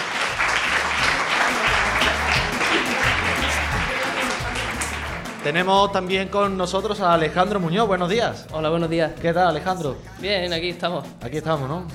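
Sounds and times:
audience applause: 0:00.0 - 0:05.5
speech: 0:05.4 - 0:11.9.

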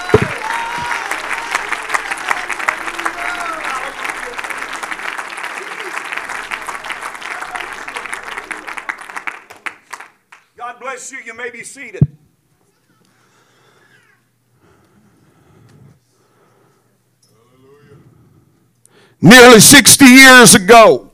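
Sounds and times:
audience applauding: 0:00.0 - 0:10.4
speech: 0:11.5 - 0:12.2, 0:19.2 - 0:21.1.

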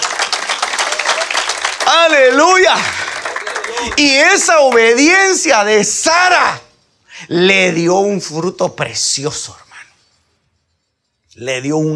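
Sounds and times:
loud audience applause: 0:00.0 - 0:05.0
speech: 0:01.9 - 0:03.0, 0:03.8 - 0:09.7, 0:11.4 - 0:11.9.

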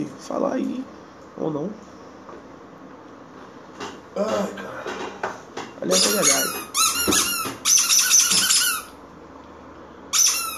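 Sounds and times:
speech: 0:00.0 - 0:02.0, 0:04.2 - 0:04.8, 0:05.8 - 0:07.8
squeaky toy squeaking: 0:05.9 - 0:09.0, 0:10.1 - 0:10.5.

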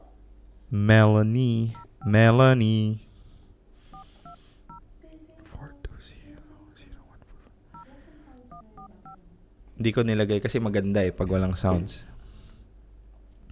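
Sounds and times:
speech: 0:00.7 - 0:03.0, 0:09.8 - 0:12.1
touch-tone telephone dialing to call a listener: 0:01.8 - 0:02.1, 0:08.5 - 0:09.2
soft talking and whispering: 0:04.2 - 0:09.5.

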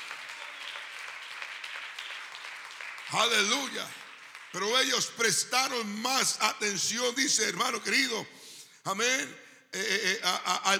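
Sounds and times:
audience applauding: 0:00.0 - 0:05.3
speech: 0:03.1 - 0:10.7.

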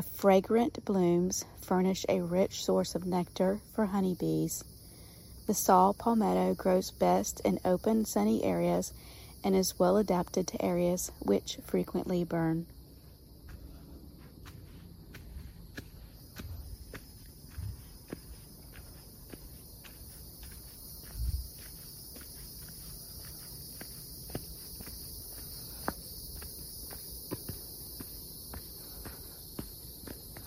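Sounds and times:
speech: 0:00.0 - 0:04.7, 0:05.5 - 0:12.8
chirping crickets and insects: 0:00.0 - 0:30.4
footsteps on a winding dirt footpath: 0:12.2 - 0:30.4.

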